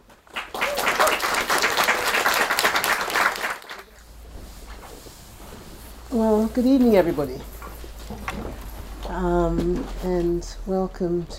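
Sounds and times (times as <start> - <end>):
audience applause: 0.0 - 4.0
speech: 6.2 - 7.6, 9.2 - 11.3.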